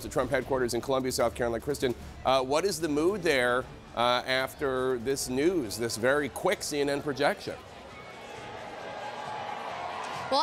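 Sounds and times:
speech: 0:00.0 - 0:07.7
people cheering at Trump campaign headquarters: 0:05.4 - 0:10.4.

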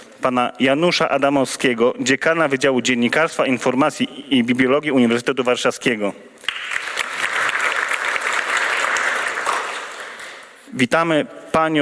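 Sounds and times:
speech: 0:00.2 - 0:06.3, 0:10.8 - 0:11.8
applause: 0:06.4 - 0:10.6.

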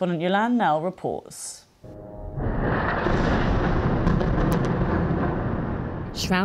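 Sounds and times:
speech: 0:00.0 - 0:02.2, 0:06.2 - 0:06.4
airstrike explosions: 0:02.0 - 0:06.4
sharp crackles: 0:02.4 - 0:06.3.

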